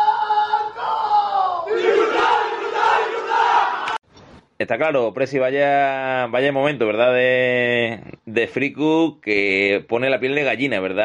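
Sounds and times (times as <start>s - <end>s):
group shouting a battle cry: 0.1s - 4.0s
speech: 4.7s - 11.0s.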